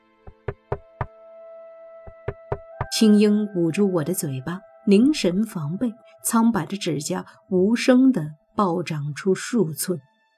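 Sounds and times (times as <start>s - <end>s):
knocking on a woodshed door: 0.3s - 1.1s, 2.1s - 3.0s
speech: 3.0s - 10.1s.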